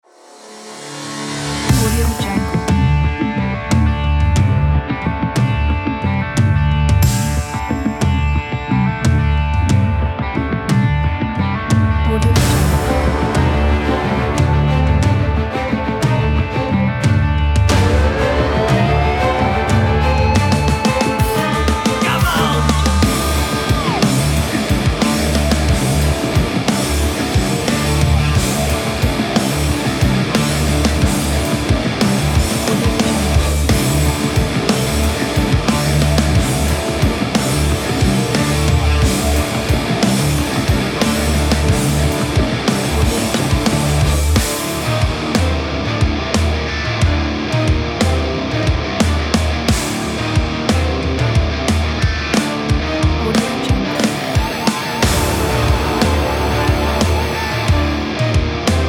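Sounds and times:
powerful sport rock music: 0.7s - 58.8s.

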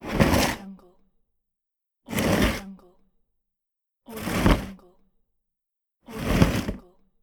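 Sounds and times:
heavy toolbox dragging: 0.0s - 0.6s, 4.2s - 4.7s, 6.2s - 6.8s.

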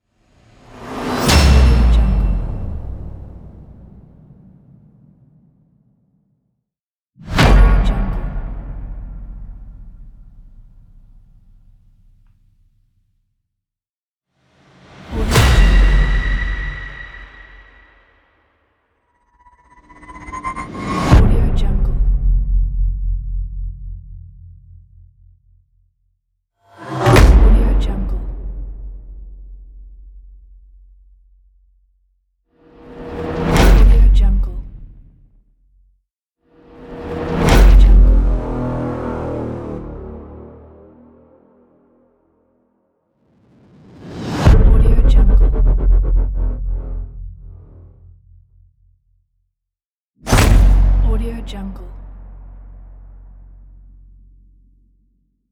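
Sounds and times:
trailer sound effects pack: 0.1s - 6.1s, 7.2s - 12.1s, 14.5s - 25.4s, 26.7s - 30.1s, 32.6s - 35.3s, 36.6s - 49.0s, 50.3s - 54.9s.

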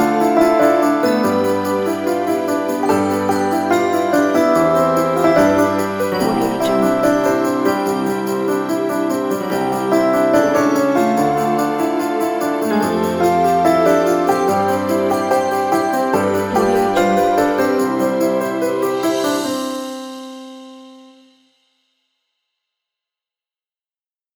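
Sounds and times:
Christmas song played on piano: 0.0s - 21.3s.

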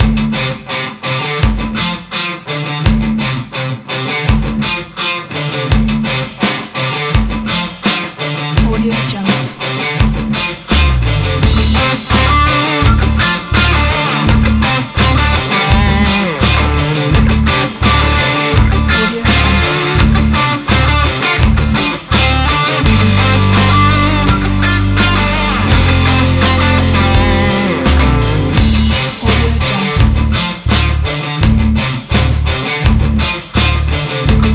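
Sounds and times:
energetic indie rock: 0.0s - 34.5s.

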